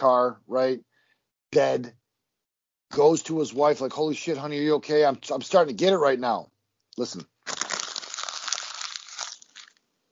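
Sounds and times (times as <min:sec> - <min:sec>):
speech: 0:00.0 - 0:00.9, 0:01.5 - 0:02.0, 0:02.9 - 0:07.3
paper notes being crumpled up: 0:07.5 - 0:09.8.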